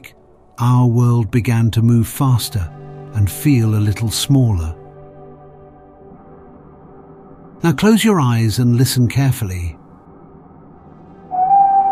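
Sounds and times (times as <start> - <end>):
speech: 0.0 - 4.8, 7.6 - 9.8
steam train choo-choo whistle: 11.3 - 11.9.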